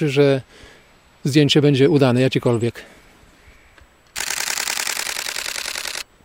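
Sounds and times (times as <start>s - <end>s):
speech: 0.0s - 3.0s
faint hiss: 0.0s - 6.2s
camera shutter clicks in burst mode: 4.2s - 6.1s.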